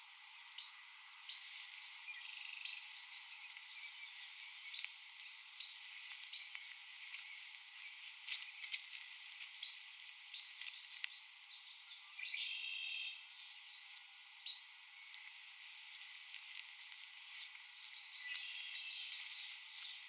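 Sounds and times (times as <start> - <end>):
Least Flycatcher singing: 0.0 - 20.0.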